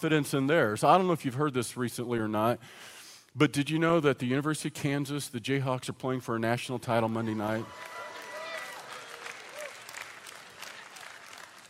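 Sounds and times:
speech: 0:00.0 - 0:08.0
crowd applauding: 0:07.2 - 0:11.6
whooping cheers: 0:07.3 - 0:11.6.

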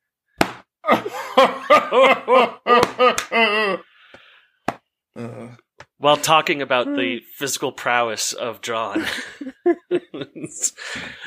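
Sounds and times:
belly slap: 0:00.4 - 0:00.7, 0:02.7 - 0:03.4
Santa-like chuckle: 0:00.8 - 0:03.9, 0:09.0 - 0:11.2
speech: 0:00.9 - 0:03.2, 0:06.0 - 0:09.5, 0:10.4 - 0:11.2.

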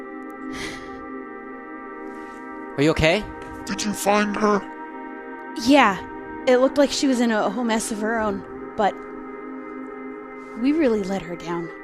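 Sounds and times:
person gasping for breath: 0:00.5 - 0:01.0
speech: 0:02.8 - 0:04.7, 0:05.6 - 0:09.1, 0:10.6 - 0:11.8.

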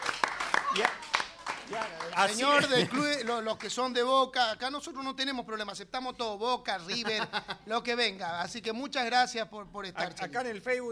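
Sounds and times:
audience applause: 0:00.0 - 0:03.8
speech: 0:01.7 - 0:10.9
laughter: 0:02.3 - 0:03.7, 0:06.8 - 0:07.8.

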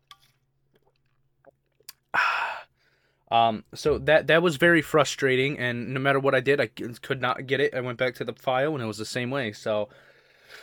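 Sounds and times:
drinking water: 0:00.7 - 0:02.1
breathy exhale: 0:02.1 - 0:03.2
speech: 0:03.3 - 0:10.6.

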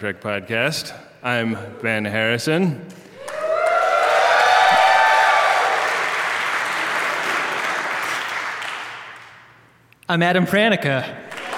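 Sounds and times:
speech: 0:00.0 - 0:03.0, 0:10.1 - 0:11.3
crowd applause in a podcast intro: 0:03.2 - 0:09.5, 0:11.3 - 0:11.5.

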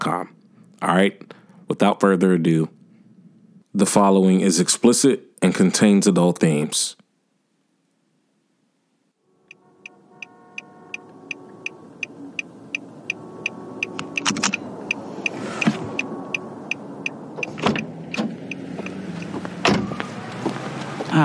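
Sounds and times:
speech: 0:00.0 - 0:02.8, 0:03.7 - 0:07.0
car engine breaking down: 0:09.4 - 0:21.2
loud clunks and bangs: 0:19.6 - 0:20.0.

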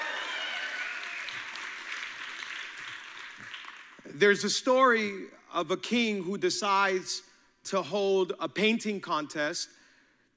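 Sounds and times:
church congregation clapping during a service: 0:00.0 - 0:04.2
speech: 0:04.2 - 0:09.8.

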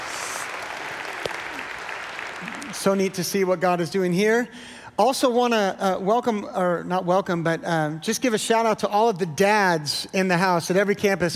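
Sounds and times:
church congregation applauding: 0:00.0 - 0:03.6
speech: 0:02.4 - 0:11.3.

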